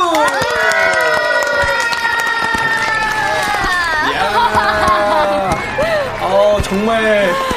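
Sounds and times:
clapping: 0:00.0 - 0:03.9
group cheering and squealing: 0:00.0 - 0:07.4
laughter: 0:03.2 - 0:07.5.

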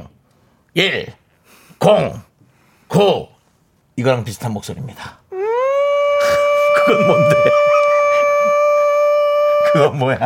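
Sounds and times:
speech: 0:00.7 - 0:01.2, 0:01.8 - 0:02.3, 0:02.9 - 0:03.3, 0:04.0 - 0:05.2, 0:06.9 - 0:07.8, 0:09.7 - 0:10.2
voice imitating an apartment broadcast siren: 0:05.3 - 0:09.9
laughter: 0:06.2 - 0:08.7.

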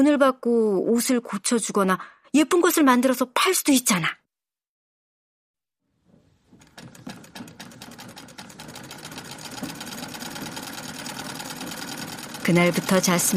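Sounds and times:
speech: 0:00.0 - 0:04.2, 0:12.5 - 0:13.3
sewing machine running: 0:06.5 - 0:13.3.

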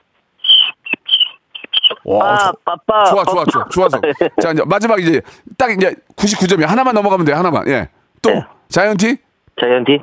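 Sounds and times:
person imitating a tiger: 0:01.9 - 0:03.3
speech: 0:02.1 - 0:10.0.

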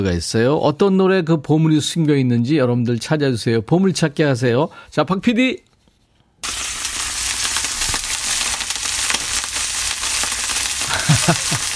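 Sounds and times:
speech: 0:00.0 - 0:05.7
oil spattering while pan-frying Korean jeon: 0:06.4 - 0:11.7
laughter: 0:10.8 - 0:11.7.

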